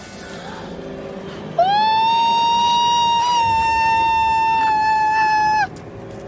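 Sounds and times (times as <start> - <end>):
wail: 1.6 - 5.8.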